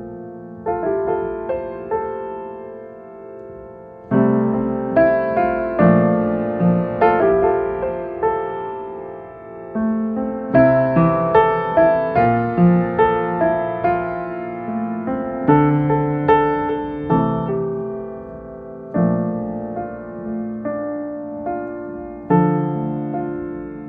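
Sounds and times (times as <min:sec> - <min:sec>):
relaxing piano music: 0:00.0 - 0:23.8.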